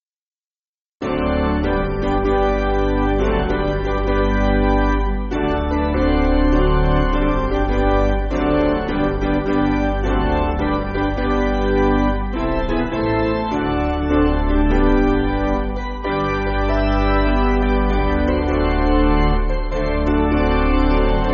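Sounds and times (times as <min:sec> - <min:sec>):
piano backing music for churches: 0:01.0 - 0:21.3.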